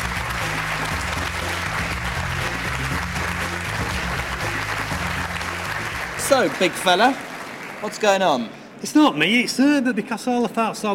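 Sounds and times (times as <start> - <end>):
audience applause: 0.0 - 8.5
speech: 6.3 - 10.9.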